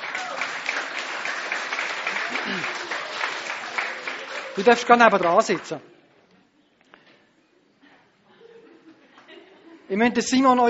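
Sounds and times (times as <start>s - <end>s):
audience applause: 0.0s - 5.8s
speech: 2.5s - 2.8s, 4.6s - 5.9s, 9.9s - 10.6s.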